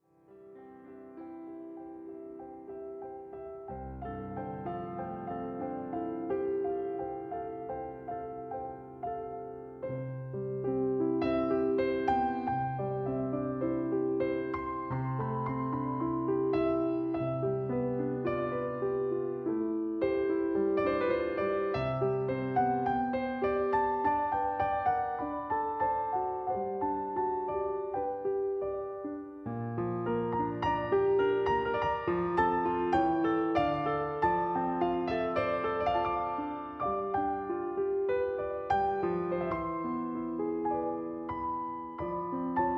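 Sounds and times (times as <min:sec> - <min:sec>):
solo piano: 0:00.0 - 0:42.7.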